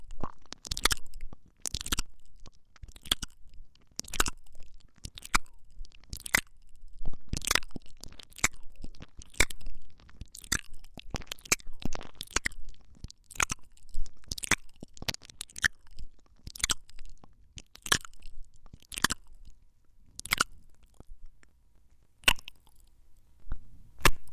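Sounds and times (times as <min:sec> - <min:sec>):
ASMR ear licking sounds: 0:00.2 - 0:19.6.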